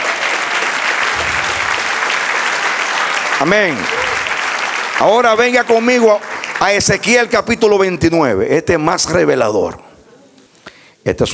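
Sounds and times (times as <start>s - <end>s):
audience applause: 0.0s - 6.9s
speech: 3.4s - 4.1s, 5.0s - 9.9s, 11.1s - 11.3s.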